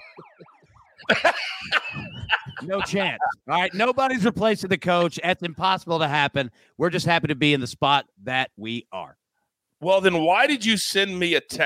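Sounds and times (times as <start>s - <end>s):
wailing alarm siren: 0.0s - 2.8s
laughter: 1.0s - 5.2s
speech: 1.0s - 9.2s, 9.8s - 11.6s.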